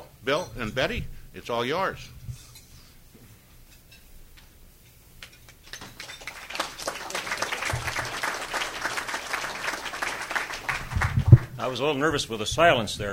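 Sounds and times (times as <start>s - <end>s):
speech: 0.2s - 2.2s, 11.6s - 13.1s
audience applause: 5.8s - 11.5s.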